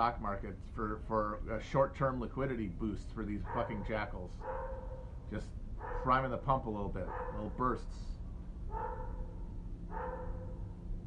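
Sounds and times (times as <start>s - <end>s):
speech: 0.0s - 9.2s
dog barking: 3.4s - 5.2s, 5.8s - 6.2s, 7.0s - 7.6s, 8.7s - 10.7s.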